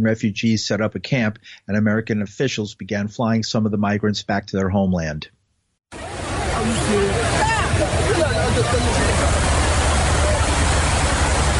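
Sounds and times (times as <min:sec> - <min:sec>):
speech: 0:00.0 - 0:06.0, 0:08.6 - 0:09.5
water sloshing as migrants wade across a submerged dam: 0:06.0 - 0:11.5
murmur of voices: 0:06.1 - 0:11.2.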